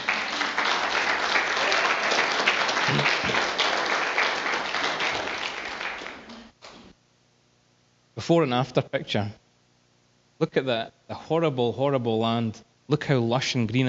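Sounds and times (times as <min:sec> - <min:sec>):
audience applause: 0:00.0 - 0:06.5
speech: 0:08.3 - 0:09.4, 0:10.4 - 0:13.8.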